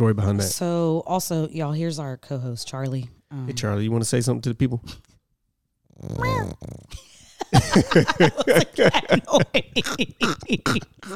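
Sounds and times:
speech: 0.0 - 5.1, 6.0 - 11.1
cat noise: 6.1 - 6.8
laughter: 7.1 - 11.1.

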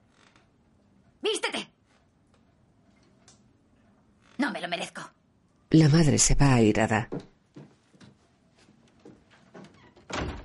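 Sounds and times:
speech: 4.6 - 7.3
door closing: 9.6 - 10.4.

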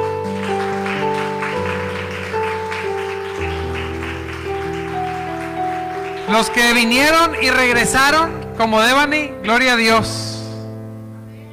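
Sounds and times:
audience applause: 0.0 - 7.7
speech: 6.3 - 10.3.

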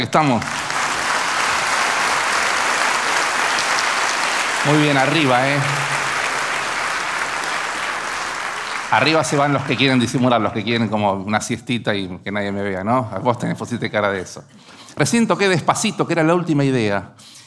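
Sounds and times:
speech: 0.0 - 0.6, 4.6 - 6.0, 8.9 - 17.4
audience applause: 0.0 - 10.8.

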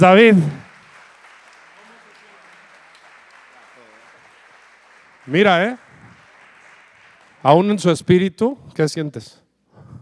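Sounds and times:
speech: 0.0 - 0.6, 5.3 - 5.8, 7.4 - 9.4
audience applause: 0.0 - 7.9.

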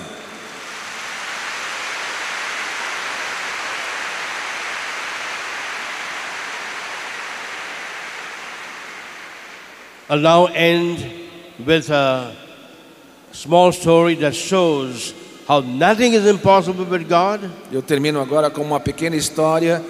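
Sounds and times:
audience applause: 0.0 - 10.1
speech: 10.1 - 12.4, 13.3 - 19.8.

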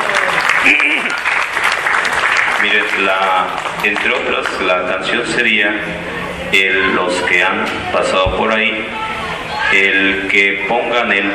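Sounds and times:
audience applause: 0.0 - 4.7
speech: 2.7 - 8.9, 9.7 - 11.3.

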